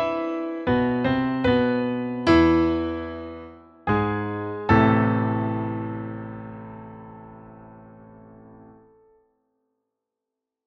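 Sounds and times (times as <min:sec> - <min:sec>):
solo melody: 0:00.0 - 0:09.2.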